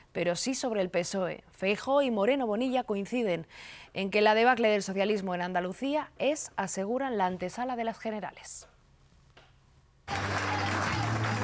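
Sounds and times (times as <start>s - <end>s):
speech: 0.2s - 8.7s, 10.1s - 10.7s
crowd cheering and applauding a politician at Génova: 10.1s - 11.4s.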